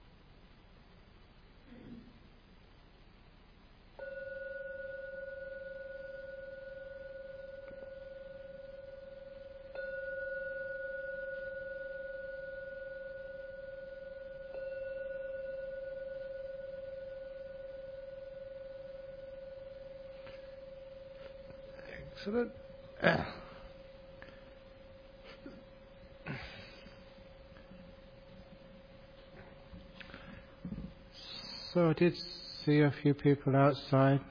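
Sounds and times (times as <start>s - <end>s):
meditation gong ringing: 4.0s - 25.2s
speech: 22.2s - 23.4s, 31.8s - 34.2s.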